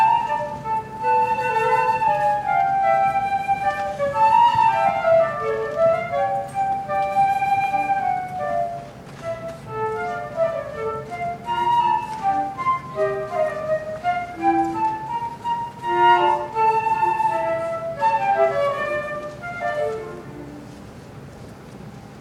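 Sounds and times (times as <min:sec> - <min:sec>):
flute duet: 0:00.0 - 0:21.1.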